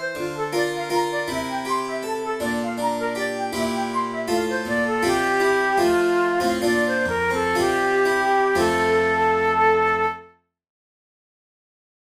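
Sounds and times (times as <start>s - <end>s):
flute playing a baroque violin sonata movement: 0.0s - 10.3s.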